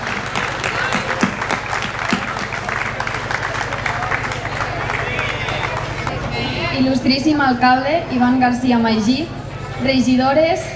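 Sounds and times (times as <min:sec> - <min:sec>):
audience applause: 0:00.0 - 0:06.1
speech: 0:06.8 - 0:10.7.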